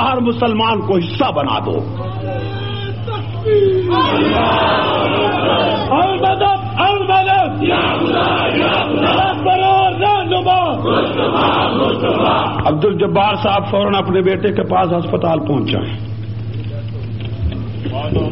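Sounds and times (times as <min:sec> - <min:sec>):
speech: 0:00.0 - 0:02.6, 0:03.4 - 0:06.6, 0:10.8 - 0:16.2, 0:18.0 - 0:18.3
steady low hum: 0:00.0 - 0:18.3
large crowd chanting religious slogans in unison: 0:03.9 - 0:05.9, 0:07.6 - 0:09.6, 0:10.7 - 0:12.7.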